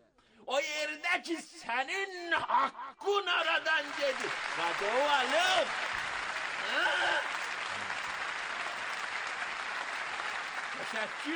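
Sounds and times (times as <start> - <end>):
speech: 0.5 - 5.8, 6.6 - 7.4, 10.8 - 11.3
audience applause: 3.6 - 11.3.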